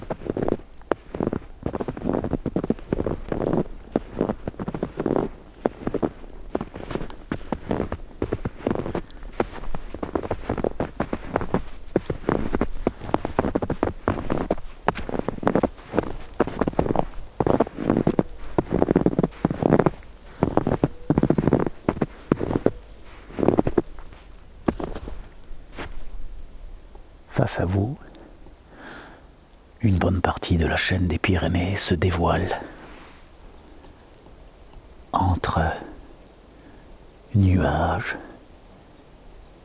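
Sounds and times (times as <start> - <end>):
footsteps in powder snow in the Pyrenees: 0.0 - 26.2
speech: 27.6 - 28.1, 29.8 - 32.7, 37.6 - 38.3.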